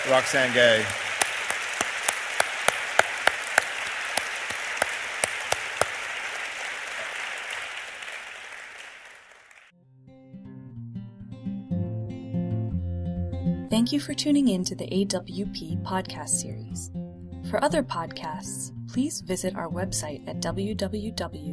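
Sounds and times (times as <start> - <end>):
audience applause: 0.0 - 9.7
speech: 0.1 - 1.0, 13.8 - 21.5
music: 9.8 - 21.5.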